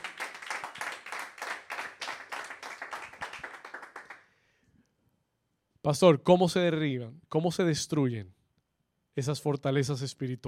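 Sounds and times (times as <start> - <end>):
audience clapping: 0.0 - 4.3
speech: 5.8 - 8.4, 9.2 - 10.4.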